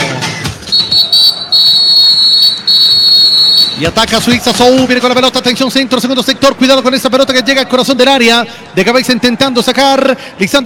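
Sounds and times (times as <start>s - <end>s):
referee's whistle starting the match: 0.7s - 3.9s
speech: 3.8s - 10.6s.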